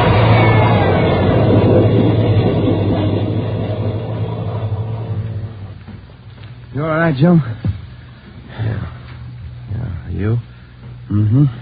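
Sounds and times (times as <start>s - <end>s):
train coming through a station: 0.0s - 9.0s
speech: 7.1s - 7.6s, 10.2s - 10.5s, 11.3s - 11.6s.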